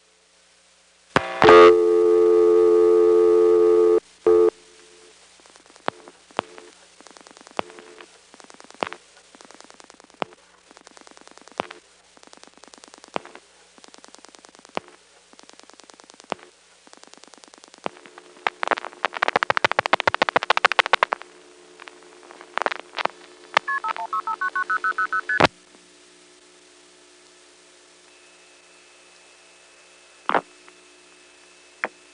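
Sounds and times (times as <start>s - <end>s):
telephone line dial tone: 1.2s - 4.5s, 23.6s - 25.5s
telephone line pulse-dialing clicks: 5.8s - 25.5s.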